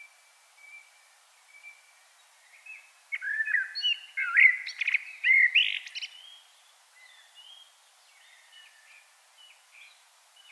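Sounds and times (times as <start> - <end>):
Common blackbird warbling song: 0.0 - 10.5.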